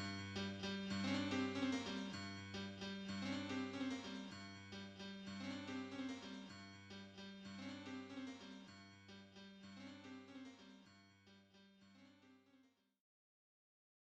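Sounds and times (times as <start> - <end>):
piano: 0.0 - 10.8.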